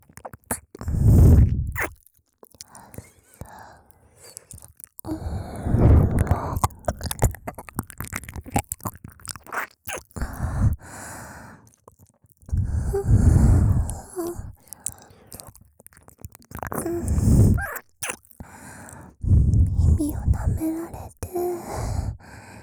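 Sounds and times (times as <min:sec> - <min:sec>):
ASMR ear licking: 0:00.1 - 0:03.5, 0:04.3 - 0:11.0, 0:11.8 - 0:21.8
person whispering a confession: 0:05.1 - 0:07.6, 0:12.5 - 0:15.0, 0:16.8 - 0:17.8, 0:19.2 - 0:22.2.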